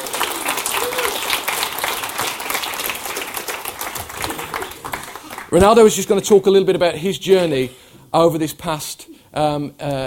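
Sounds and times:
round of applause: 0.0 - 6.0
speech: 5.5 - 10.0.

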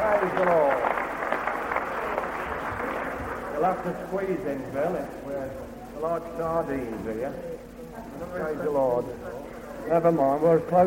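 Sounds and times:
audience clapping: 0.0 - 4.1
speech: 0.2 - 0.9, 3.6 - 10.8.

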